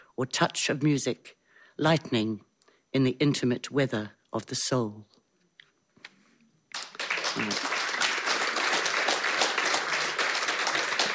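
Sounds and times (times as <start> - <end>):
speech: 0.2 - 5.2, 7.4 - 7.7
audience clapping: 6.7 - 11.1.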